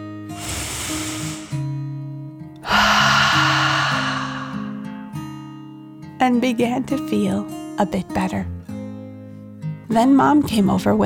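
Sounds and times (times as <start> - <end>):
deep breath in and out: 0.3 - 1.8, 2.6 - 5.0
speech: 6.3 - 8.6, 9.9 - 11.0.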